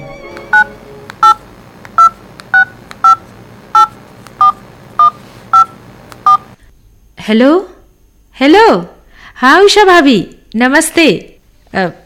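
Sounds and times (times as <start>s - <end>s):
faint hum: 0.0s - 10.6s
touch-tone beeps dialing a telephone: 0.5s - 1.4s, 2.0s - 6.5s
speech: 7.3s - 7.7s, 8.4s - 12.0s.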